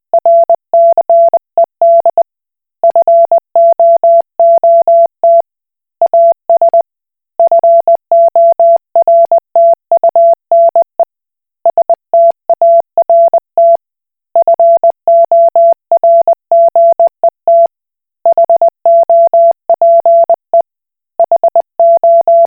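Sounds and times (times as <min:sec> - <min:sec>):
Koch Morse code beeps: 0:00.2 - 0:02.2, 0:02.8 - 0:05.4, 0:06.1 - 0:06.8, 0:07.4 - 0:10.9, 0:11.7 - 0:13.8, 0:14.4 - 0:17.7, 0:18.3 - 0:20.4, 0:21.2 - 0:22.4.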